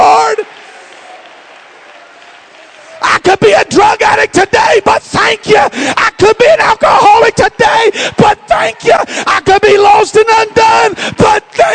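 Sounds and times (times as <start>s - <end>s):
audience clapping hands: 0.0s - 4.9s, 10.9s - 11.7s
speech: 3.3s - 11.7s.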